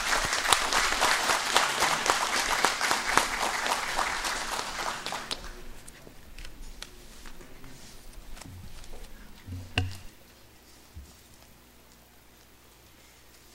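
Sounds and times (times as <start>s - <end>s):
applause: 0.0s - 5.8s.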